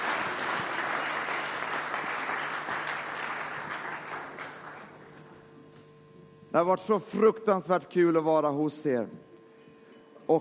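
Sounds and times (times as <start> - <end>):
large audience applause: 0.0 - 5.2
speech: 6.5 - 9.3.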